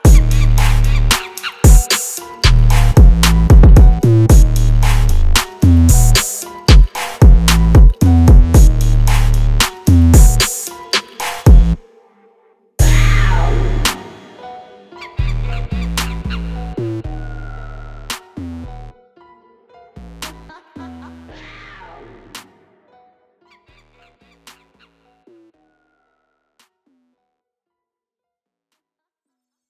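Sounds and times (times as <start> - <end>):
music beat: 0.0 - 11.8, 12.8 - 18.9, 20.2 - 20.5.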